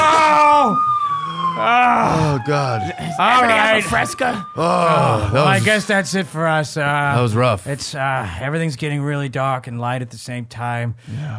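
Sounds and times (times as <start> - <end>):
several police car sirens wailing: 0.0 - 6.2
speech: 2.4 - 11.3.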